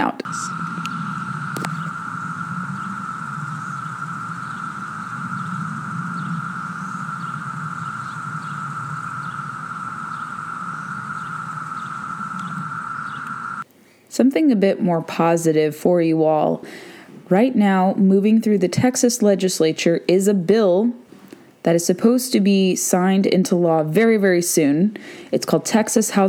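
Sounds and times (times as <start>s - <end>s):
cicadas calling to find mates: 0.0s - 13.7s
speech: 14.2s - 21.0s, 21.6s - 26.2s.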